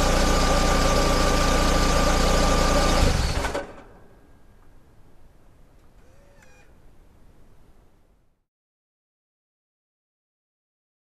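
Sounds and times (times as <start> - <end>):
car engine shutting off after parking: 0.0 - 4.3.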